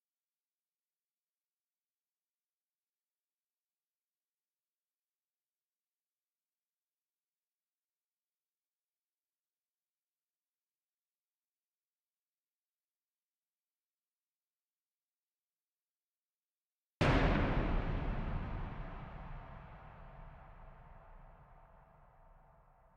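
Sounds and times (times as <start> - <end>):
thunder clap: 17.0 - 22.4.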